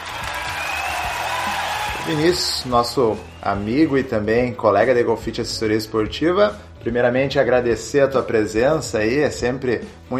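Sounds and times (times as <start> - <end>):
applause from a small group: 0.0 - 3.4
speech: 2.1 - 10.1.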